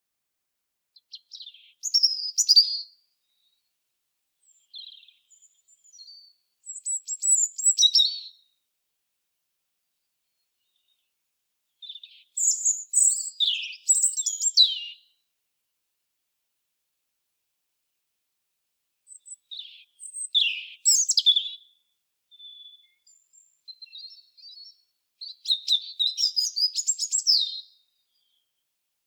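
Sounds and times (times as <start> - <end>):
European robin singing: 1.1 - 2.9, 4.5 - 8.4, 11.8 - 15.0, 19.1 - 21.7, 22.3 - 28.3.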